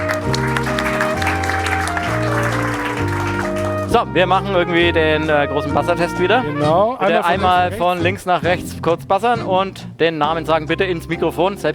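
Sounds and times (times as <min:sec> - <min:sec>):
audience applause: 0:00.0 - 0:04.0
laughter: 0:00.0 - 0:08.6
speech: 0:03.9 - 0:11.7.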